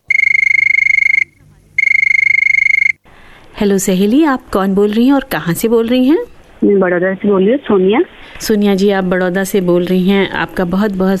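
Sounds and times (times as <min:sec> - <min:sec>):
telephone ringing: 0:00.0 - 0:03.0
speech: 0:03.6 - 0:11.1.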